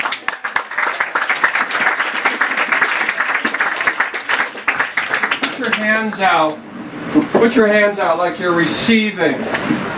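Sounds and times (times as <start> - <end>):
people clapping: 0.0 - 6.6
speech: 6.0 - 9.8.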